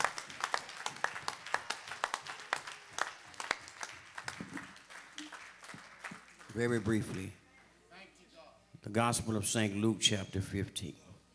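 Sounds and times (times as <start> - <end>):
audience hand clapping: 0.0 - 7.3
speech: 6.6 - 7.4, 8.8 - 11.0.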